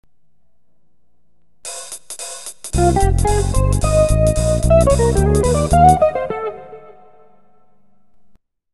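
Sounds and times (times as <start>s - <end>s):
jazz music: 2.7s - 7.4s.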